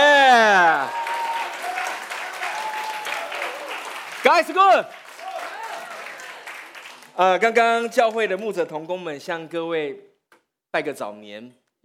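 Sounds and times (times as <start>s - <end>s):
audience clapping: 0.4s - 9.0s
speech: 4.4s - 5.0s, 7.2s - 10.1s, 10.7s - 11.8s.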